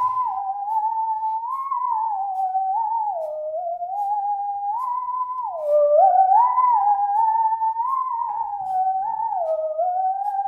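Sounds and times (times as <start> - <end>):
singing saw being played: 0.0 - 10.4.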